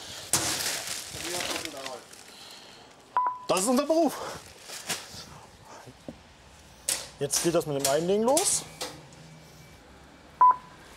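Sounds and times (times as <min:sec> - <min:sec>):
speech: 0:03.5 - 0:04.5, 0:07.2 - 0:08.7
barcode scanner beep scanning a parcel: 0:10.4 - 0:10.7.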